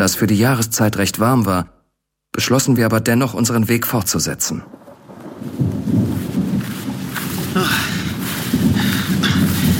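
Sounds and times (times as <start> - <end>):
speech: 0.0 - 1.8, 2.4 - 4.8
rain: 3.7 - 9.7
thunder rumbling: 4.2 - 9.7.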